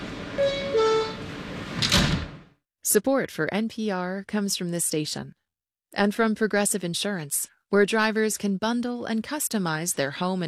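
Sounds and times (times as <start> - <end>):
subway train doors shutting: 0.0 - 2.5
two-note descending subway door chime: 0.4 - 1.3
speech: 2.9 - 10.4.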